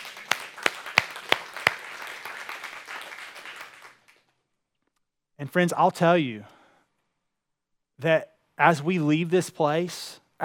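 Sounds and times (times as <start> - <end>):
audience applause: 0.0 - 4.2
speech: 5.4 - 6.5, 8.0 - 10.4.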